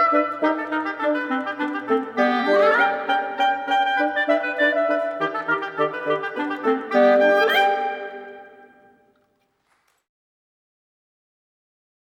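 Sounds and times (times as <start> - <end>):
ragtime piece: 0.0 - 8.5.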